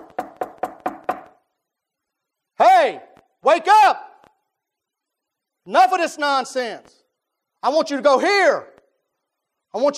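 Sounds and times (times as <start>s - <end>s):
knocking: 0.0s - 1.4s
speech: 2.8s - 4.1s, 5.6s - 7.0s, 7.6s - 8.7s, 9.7s - 9.9s.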